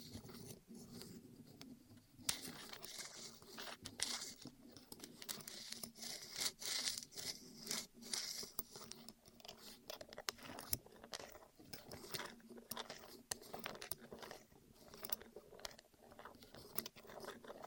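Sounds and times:
rubbing and rolling on the ears: 0.0s - 17.6s.

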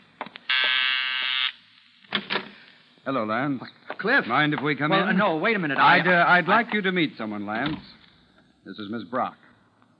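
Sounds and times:
doorbell buzzer: 0.5s - 1.5s
speech: 3.1s - 8.0s, 8.6s - 9.4s.

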